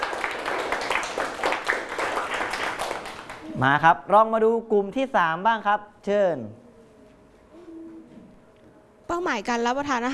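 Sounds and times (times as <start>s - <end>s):
applause: 0.0s - 3.5s
speech: 3.6s - 6.6s, 9.1s - 10.1s.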